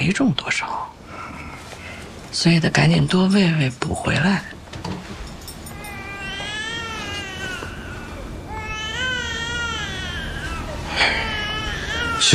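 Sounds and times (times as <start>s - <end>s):
speech: 0.1s - 1.0s, 2.3s - 5.1s
baby girl crying: 5.7s - 12.3s.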